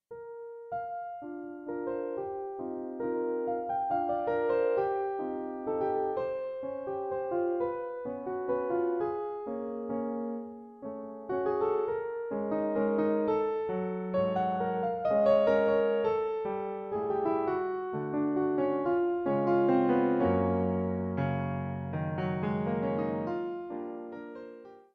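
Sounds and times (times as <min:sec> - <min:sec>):
piano piece: 0:00.1 - 0:24.9.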